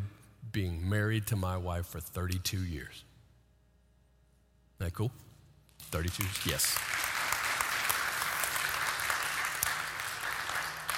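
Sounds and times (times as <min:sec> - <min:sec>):
speech: 0:00.5 - 0:03.1, 0:04.8 - 0:07.0
applause: 0:05.8 - 0:10.9.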